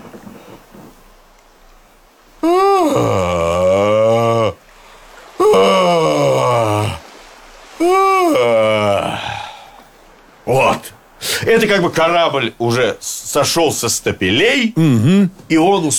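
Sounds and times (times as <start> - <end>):
exaggerated drawn-out human yawn: 2.4 - 4.7, 5.4 - 7.1, 7.8 - 9.9
speech: 11.7 - 15.9.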